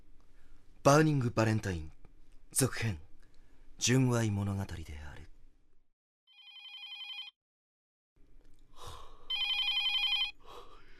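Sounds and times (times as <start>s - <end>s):
speech: 0.8s - 3.0s, 3.8s - 5.2s
telephone ringing with electronic tones: 6.3s - 7.4s, 9.3s - 10.4s
person gasping: 8.7s - 9.3s, 10.4s - 10.9s.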